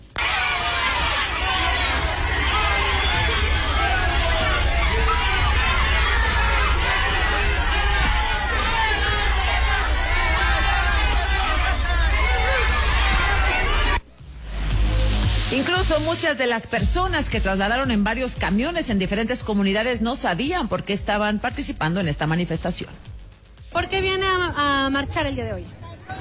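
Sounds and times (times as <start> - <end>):
protesters shouting at arriving politicians: 0.0 - 14.1
low rumble: 0.0 - 16.0
speech: 16.0 - 23.1, 23.8 - 25.8.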